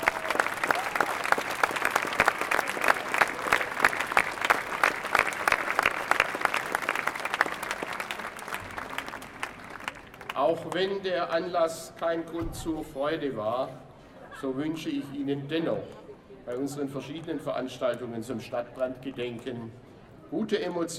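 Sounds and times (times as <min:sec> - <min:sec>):
audience applause: 0:00.0 - 0:10.8
speech: 0:10.7 - 0:13.8, 0:14.4 - 0:20.9.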